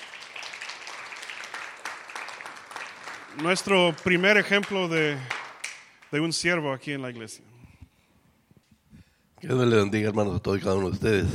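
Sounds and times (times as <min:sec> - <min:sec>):
audience applause: 0:00.0 - 0:06.3
speech: 0:03.4 - 0:05.4, 0:06.1 - 0:07.5, 0:09.4 - 0:11.3.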